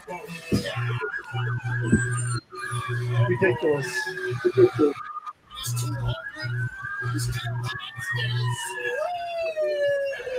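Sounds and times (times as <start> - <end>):
police escort sirens wailing: 0.4 - 5.3, 6.0 - 10.3
speech: 3.4 - 5.0.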